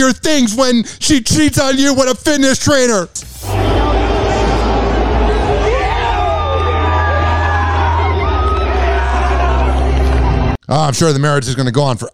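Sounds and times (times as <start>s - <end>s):
speech: 0.0s - 3.6s, 10.7s - 12.1s
crowd of onlookers cheering and chattering: 3.4s - 10.6s
low hum: 3.4s - 10.6s
rising whoops: 3.5s - 10.4s.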